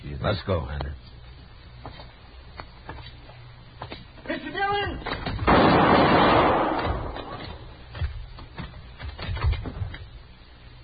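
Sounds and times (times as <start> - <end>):
speech: 0.2 - 1.0
gunshot in a radio drama: 5.4 - 7.6.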